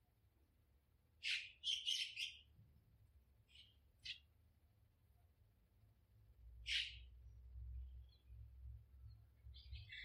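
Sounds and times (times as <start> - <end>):
birds calling in a garden: 1.2 - 2.6, 3.4 - 4.3, 6.6 - 10.0.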